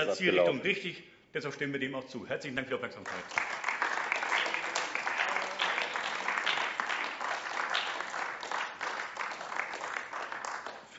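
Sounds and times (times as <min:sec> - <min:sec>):
speech: 0:00.0 - 0:03.7
applause in parliament chamber: 0:03.0 - 0:10.9.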